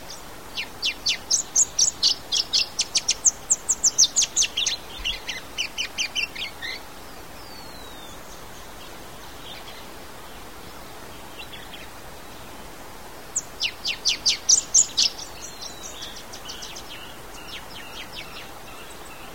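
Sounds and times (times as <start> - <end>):
bright-rumped yellow finch giving high sharp chirps: 0.5 - 6.8, 13.3 - 18.9.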